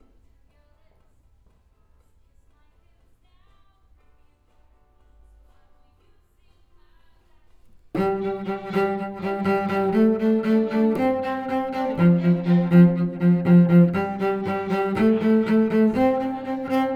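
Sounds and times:
cello: 0:08.0 - 0:16.9.

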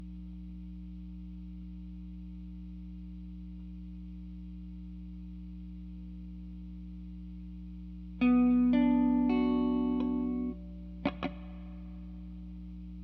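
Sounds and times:
guitar: 0:08.1 - 0:13.0.

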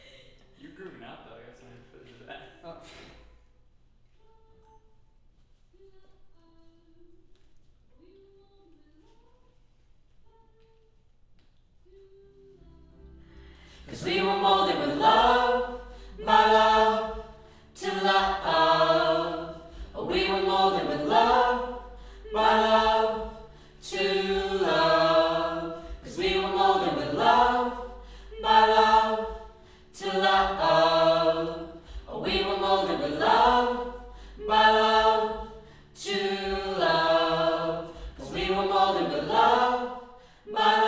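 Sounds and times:
choir singing: 0:13.5 - 0:40.8.

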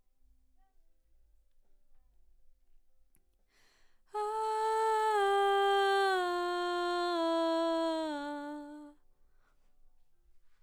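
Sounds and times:
background vocals: 0:04.2 - 0:08.9.

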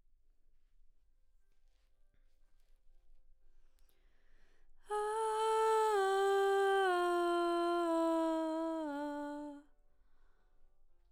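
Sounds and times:
background vocals: 0:04.9 - 0:09.6.

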